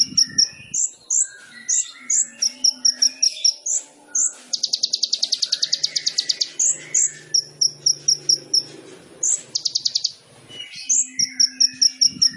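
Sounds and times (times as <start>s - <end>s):
sunbird song: 0.0s - 12.3s.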